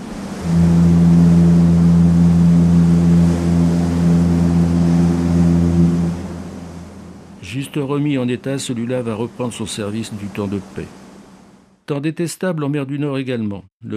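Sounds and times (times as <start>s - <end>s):
large ocean liner siren blaring: 0.0s - 7.5s
speech: 7.8s - 11.0s, 11.9s - 13.9s.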